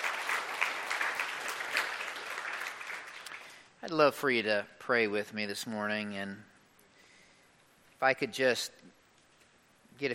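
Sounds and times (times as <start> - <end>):
audience clapping: 0.0 - 3.7
speech: 3.8 - 6.5, 8.0 - 8.9.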